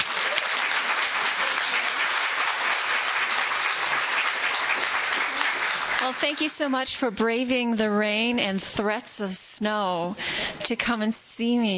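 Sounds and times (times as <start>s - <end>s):
audience applause welcoming the speaker: 0.0s - 6.9s
speech: 6.0s - 11.7s.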